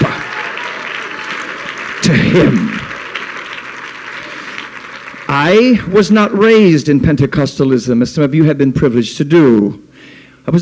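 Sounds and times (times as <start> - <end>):
audience clapping: 0.0 - 6.7
speech: 2.1 - 2.8, 5.4 - 10.6.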